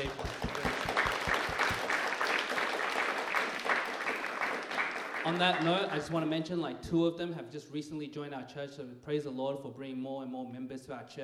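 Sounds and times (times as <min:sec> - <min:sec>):
applause: 0:00.0 - 0:06.2
speech: 0:05.2 - 0:11.2.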